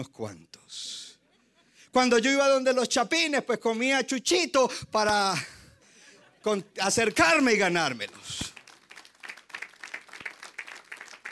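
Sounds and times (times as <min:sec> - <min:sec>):
speech: 0:00.0 - 0:01.0, 0:02.0 - 0:05.6, 0:06.4 - 0:08.5
laughter: 0:01.2 - 0:01.9, 0:05.0 - 0:07.8
audience applause: 0:07.0 - 0:11.3.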